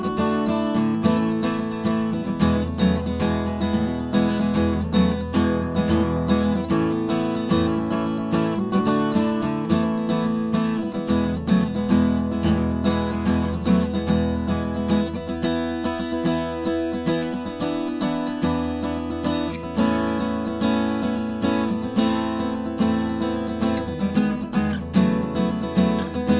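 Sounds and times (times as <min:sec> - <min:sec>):
guitar strumming: 0:00.0 - 0:26.3.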